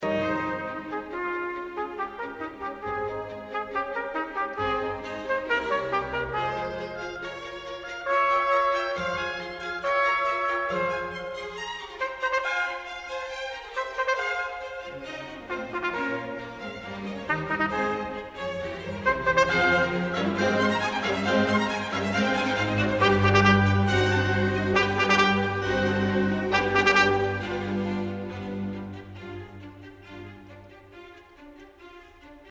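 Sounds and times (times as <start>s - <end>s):
trumpet concerto: 0.0s - 30.9s.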